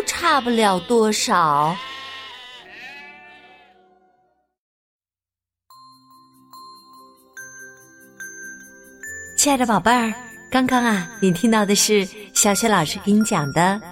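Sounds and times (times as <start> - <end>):
lambs bleating: 0.0 - 4.4
speech: 0.2 - 2.0, 9.4 - 13.9
light chiming melody with bell-like dings: 5.7 - 13.9.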